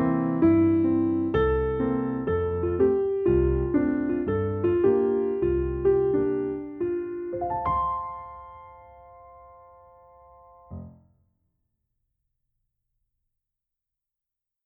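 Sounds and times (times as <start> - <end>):
musical accompaniment: 0.4 - 10.7.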